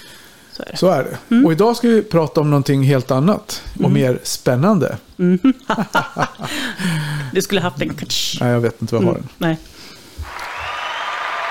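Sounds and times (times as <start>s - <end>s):
speech: 0.6s - 10.0s
laughter: 5.2s - 6.9s
applause sound effect: 10.2s - 11.4s.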